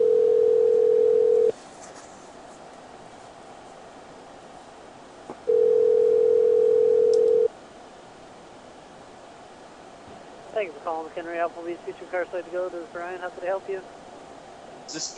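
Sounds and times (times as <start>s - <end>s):
low-pitched telephone tone: 0.0s - 1.5s, 5.5s - 7.5s
speech: 10.6s - 14.0s, 14.9s - 15.1s
quiet telephone line hiss: 14.9s - 15.1s.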